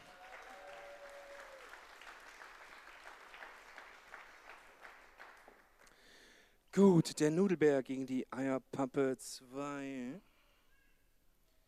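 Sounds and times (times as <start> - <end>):
crowd applause: 0.0 - 5.7
speech: 6.8 - 10.3.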